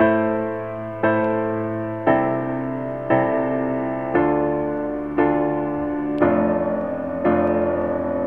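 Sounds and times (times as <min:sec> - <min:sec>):
sad piano loop: 0:00.0 - 0:08.2.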